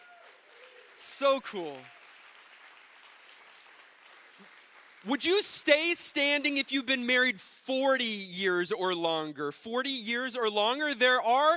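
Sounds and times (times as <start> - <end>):
audience applause: 0.0 - 6.0
speech: 1.0 - 2.0, 5.0 - 11.5.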